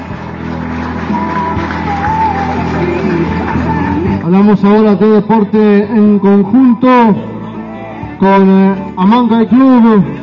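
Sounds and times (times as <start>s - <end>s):
audience applause: 0.0s - 4.2s
speech: 4.3s - 7.3s, 8.2s - 10.2s.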